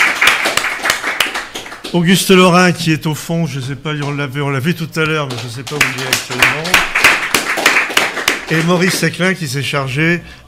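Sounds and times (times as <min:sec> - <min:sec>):
audience applause: 0:00.0 - 0:01.9, 0:05.3 - 0:09.1
speech: 0:01.9 - 0:07.0, 0:08.5 - 0:10.4.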